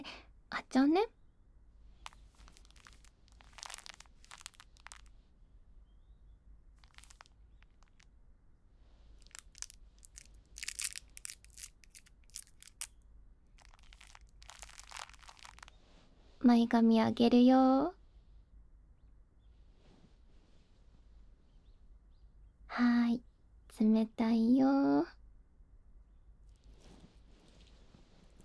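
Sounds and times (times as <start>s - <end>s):
speech: 0.0s - 1.2s, 16.5s - 18.0s, 23.8s - 25.2s
cooling gel sheet plastic packet crinkled and torn open: 2.0s - 5.1s, 6.8s - 8.0s, 9.2s - 12.9s, 13.6s - 15.8s.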